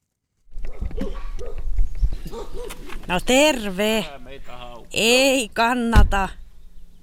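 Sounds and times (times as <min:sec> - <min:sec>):
Karelian bear dog barking: 0:00.6 - 0:01.6, 0:02.2 - 0:02.8
speech: 0:02.6 - 0:04.2, 0:05.0 - 0:06.4.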